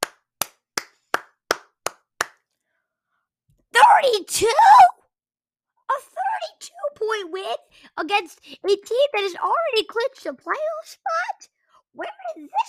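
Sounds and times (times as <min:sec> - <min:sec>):
hands clapping: 0:00.0 - 0:02.5
speech: 0:04.0 - 0:05.0, 0:05.9 - 0:12.6.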